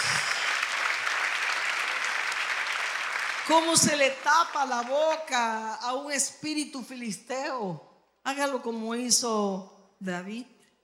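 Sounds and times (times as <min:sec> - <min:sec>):
congregation applause at a church service: 0:00.0 - 0:05.5
speech: 0:03.5 - 0:10.5.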